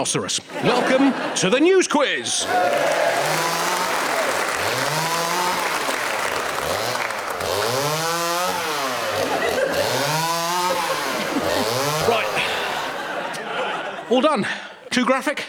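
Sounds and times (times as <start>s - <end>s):
speech: 0.0s - 3.6s, 14.1s - 15.4s
laughter: 0.4s - 15.0s
chainsaw cutting into a large block of wood: 2.4s - 13.4s.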